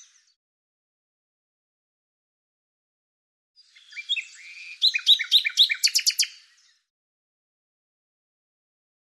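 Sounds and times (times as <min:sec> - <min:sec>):
bird song with scratchy notes and a run of high sharp notes: 0:00.0 - 0:00.4, 0:03.6 - 0:06.9.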